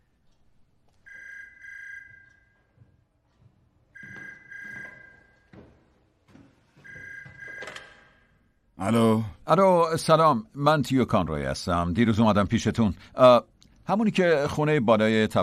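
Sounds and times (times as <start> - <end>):
telephone ringing unanswered: 4.0 - 5.5, 6.8 - 8.2
speech: 8.8 - 15.4.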